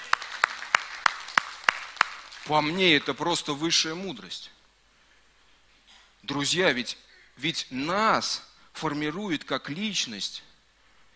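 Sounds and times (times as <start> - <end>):
audience applause: 0.0 - 3.1
speech: 2.5 - 4.6, 6.2 - 10.5.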